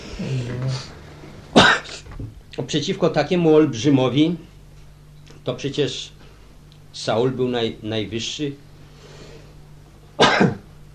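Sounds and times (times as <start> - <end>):
speech: 0.2 - 1.0, 2.6 - 4.5, 5.5 - 6.2, 6.9 - 8.6
person sneezing: 1.6 - 2.1, 10.2 - 10.6.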